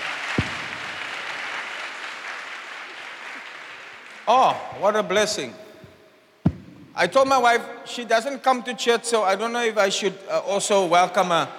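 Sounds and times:
audience applauding graduates: 0.0 - 4.3
speech: 4.3 - 5.6, 7.0 - 11.5.

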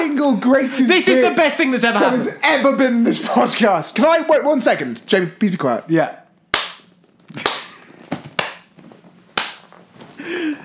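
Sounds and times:
speech: 0.1 - 6.2
hand clapping: 6.5 - 8.7, 9.4 - 9.7.

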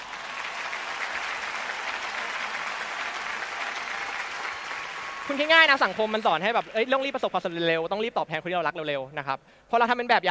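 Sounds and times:
audience applause: 0.0 - 7.6
speech: 5.3 - 10.2.

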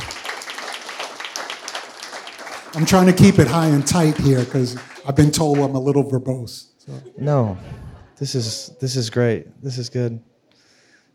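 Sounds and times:
audience clapping: 0.0 - 6.0
speech: 2.7 - 10.3.

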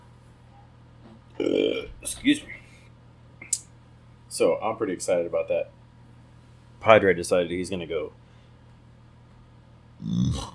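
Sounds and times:
burp: 1.4 - 2.0, 10.0 - 10.5
speech: 1.4 - 2.6, 4.4 - 5.8, 6.8 - 8.2.

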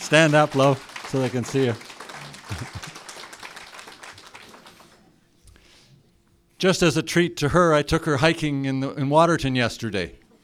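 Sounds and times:
audience applause: 0.0 - 5.0
speech: 0.1 - 1.9, 6.6 - 10.2
laughter: 1.2 - 5.0
low voices murmuring: 1.2 - 6.4.

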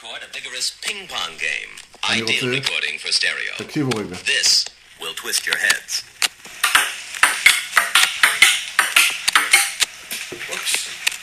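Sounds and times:
speech: 0.0 - 6.1
ping pong ball rally: 6.6 - 9.8.

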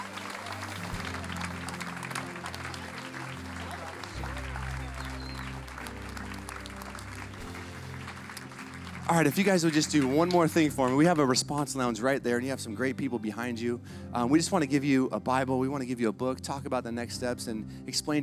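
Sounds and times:
low sustained musical drone: 0.0 - 11.1
audience clapping enthusiastically: 0.0 - 11.9
speech: 9.1 - 18.2.

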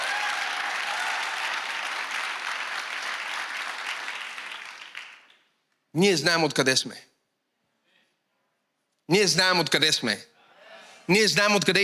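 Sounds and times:
sustained applause from a large audience: 0.0 - 5.4
speech: 6.0 - 7.1, 9.1 - 10.3, 11.1 - 11.8.

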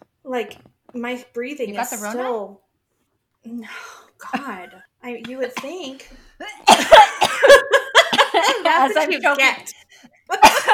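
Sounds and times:
speech: 0.3 - 2.6, 3.4 - 7.0, 8.7 - 10.7
person coughing while choking on water: 4.7 - 8.7, 10.3 - 10.7.

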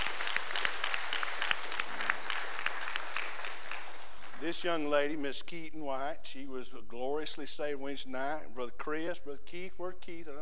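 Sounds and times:
audience applause: 0.0 - 4.6
speech: 4.4 - 10.3.

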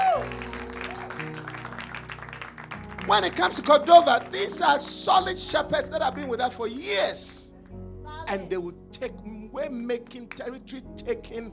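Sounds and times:
audience clapping: 0.0 - 6.3, 10.0 - 10.5
speech: 3.1 - 7.4, 8.3 - 11.5.

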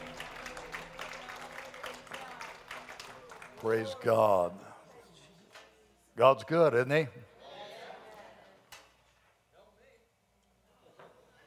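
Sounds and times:
audience clapping: 0.0 - 4.6
speech: 3.6 - 4.6, 6.2 - 7.3.

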